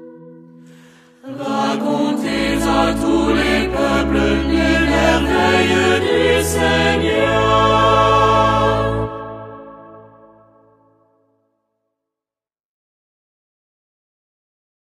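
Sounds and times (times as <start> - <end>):
vocal ensemble singing a psalm: 1.2 - 10.3.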